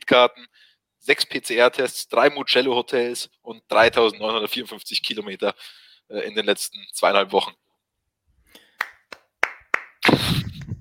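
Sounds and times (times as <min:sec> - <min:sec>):
speech: 0:00.1 - 0:07.6
applause from two people: 0:08.7 - 0:10.2.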